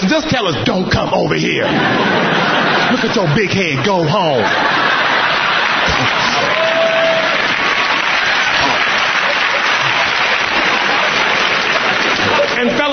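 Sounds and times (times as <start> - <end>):
speech: 0.1 - 4.9
laughter: 0.2 - 12.9
women clapping: 5.0 - 12.9.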